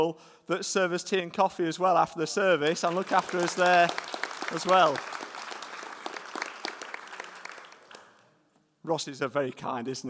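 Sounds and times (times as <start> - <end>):
speech: 0.0 - 5.2, 8.8 - 10.0
audience round of applause: 2.7 - 8.2.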